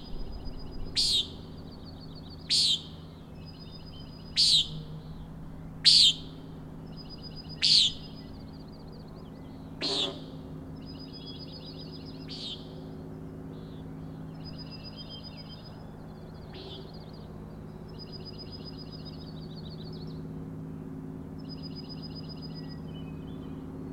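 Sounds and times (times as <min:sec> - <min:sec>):
steady low humming: 0:00.0 - 0:23.9
common nighthawk peents: 0:00.9 - 0:01.4, 0:02.5 - 0:02.9, 0:04.2 - 0:04.8, 0:05.8 - 0:06.3, 0:07.5 - 0:08.2, 0:09.8 - 0:10.4, 0:16.5 - 0:17.1.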